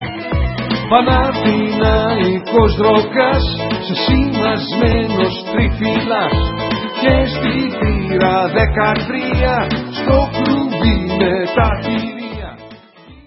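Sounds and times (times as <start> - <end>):
rock and roll music: 0.0 - 13.2.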